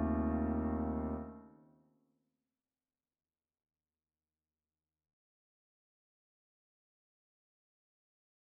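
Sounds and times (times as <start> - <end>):
piano: 0.0 - 1.5.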